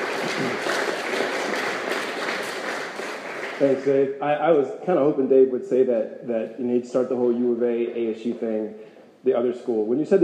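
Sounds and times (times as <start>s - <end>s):
crowd applauding: 0.0s - 4.0s
speech: 0.3s - 0.7s, 3.6s - 10.2s.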